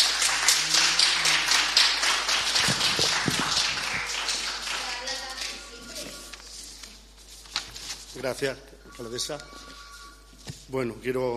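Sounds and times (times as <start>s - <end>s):
audience applause: 0.0s - 5.2s
speech: 8.2s - 9.6s, 10.7s - 11.3s.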